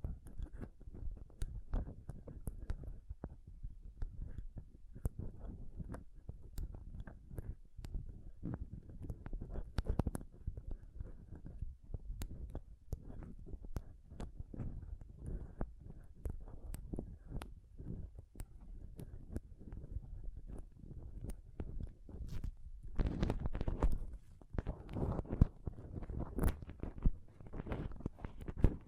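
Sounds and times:
close-up microphone scratching and touching: 0.0 - 28.8.

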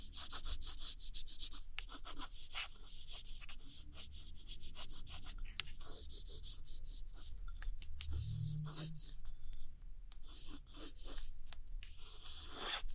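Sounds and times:
soft scratchy tracing on old postcards: 0.0 - 12.9
brief low hums: 8.0 - 9.3.

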